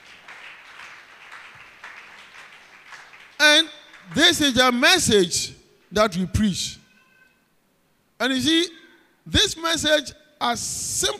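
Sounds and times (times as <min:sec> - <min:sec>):
audience clapping hands: 0:00.0 - 0:04.6
speech: 0:03.5 - 0:06.8, 0:08.2 - 0:11.1.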